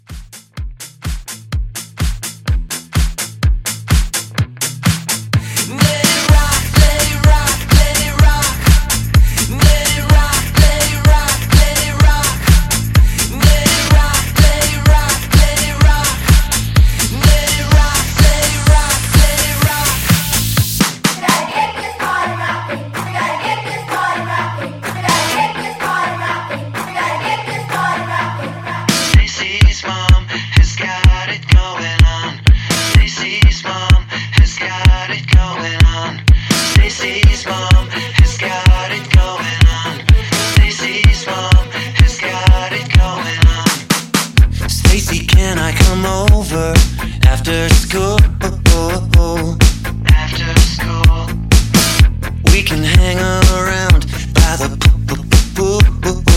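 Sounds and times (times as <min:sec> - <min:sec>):
energetic rock music: 0:00.0 - 0:56.3.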